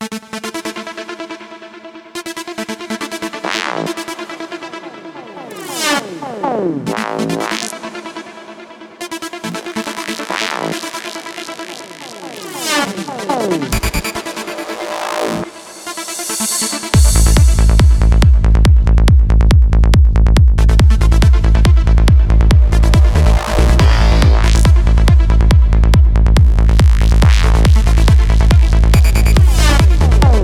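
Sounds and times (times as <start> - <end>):
running trance music: 0.0 - 30.4.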